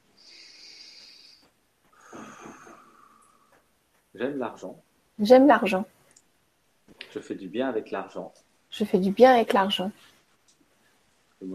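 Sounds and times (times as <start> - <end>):
deep breath: 0.2 - 3.6
speech: 4.2 - 5.9, 7.1 - 10.1.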